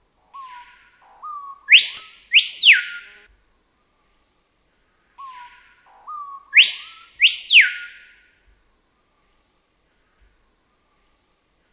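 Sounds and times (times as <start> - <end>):
screaming piha whistling song: 0.4 - 3.3, 6.1 - 8.3.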